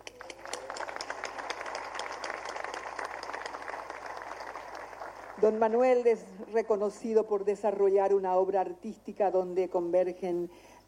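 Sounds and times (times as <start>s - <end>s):
audience applause: 0.0s - 5.6s
speech: 5.4s - 10.8s.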